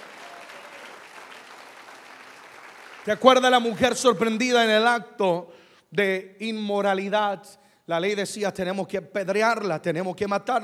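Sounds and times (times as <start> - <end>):
audience applause: 0.0 - 3.2
speech: 3.1 - 10.6.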